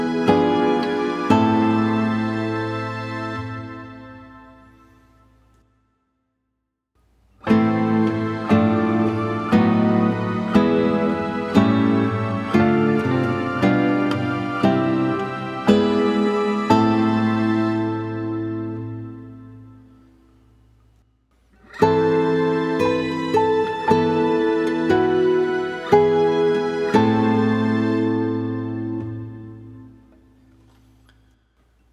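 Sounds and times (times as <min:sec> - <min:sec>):
classical guitar cadences: 0:00.0 - 0:05.6, 0:07.0 - 0:31.9.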